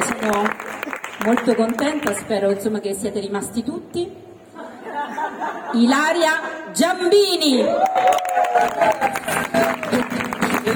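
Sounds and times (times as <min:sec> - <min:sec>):
audience applause: 0:00.0 - 0:01.6, 0:07.8 - 0:10.7
speech: 0:00.2 - 0:04.2, 0:05.7 - 0:10.7
laughter: 0:04.6 - 0:05.9
cheers: 0:07.6 - 0:10.7.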